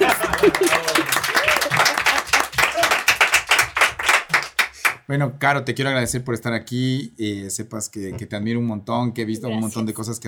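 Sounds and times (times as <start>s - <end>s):
laughter: 0.0s - 3.0s
small group applause: 0.0s - 5.0s
speech: 5.1s - 10.2s.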